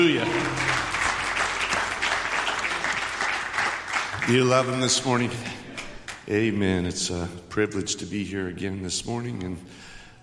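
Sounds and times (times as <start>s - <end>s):
speech: 0.0s - 0.7s, 4.2s - 5.6s, 6.3s - 9.9s
audience clapping: 0.0s - 6.3s.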